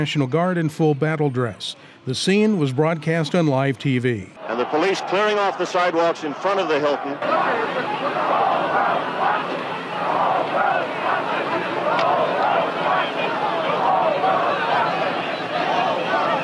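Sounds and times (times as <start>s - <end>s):
speech: 0.0s - 8.5s
crowd of demonstrators chanting: 4.4s - 16.4s.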